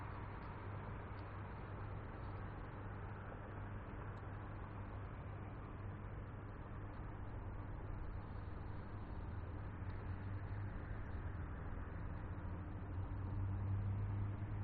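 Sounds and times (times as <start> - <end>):
night boulevard ambience: 0.0 - 14.6.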